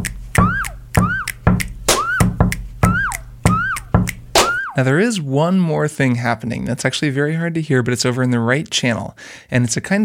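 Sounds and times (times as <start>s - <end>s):
punchy drum beat: 0.0s - 4.8s
whistled swooping note imitating a quirky sound effect: 0.4s - 4.8s
speech: 4.8s - 10.0s.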